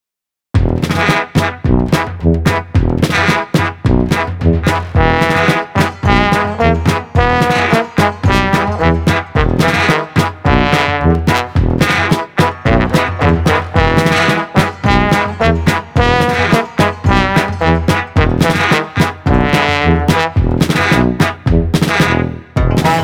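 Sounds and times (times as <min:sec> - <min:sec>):
Balkan brass band playing: 0:00.6 - 0:23.0.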